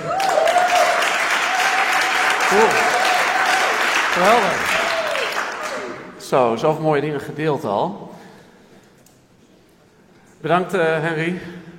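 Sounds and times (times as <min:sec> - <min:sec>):
audience applause: 0:00.0 - 0:06.0
speech: 0:02.5 - 0:02.8, 0:04.2 - 0:04.8, 0:06.3 - 0:08.2, 0:10.4 - 0:11.7.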